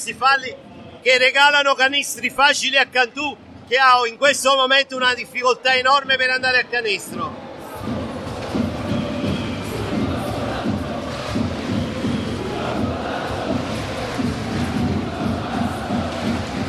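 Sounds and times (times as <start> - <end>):
speech: 0.0 - 7.4
Cantù basketball fans cheering in the visitors' stand: 7.0 - 16.6.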